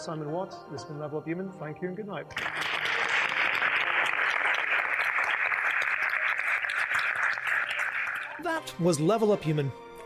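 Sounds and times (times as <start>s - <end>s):
speech: 0.0s - 2.6s, 8.4s - 10.0s
theatre audience applause at the AMI Theatre, Oxfordshire Science Festival: 2.3s - 8.4s.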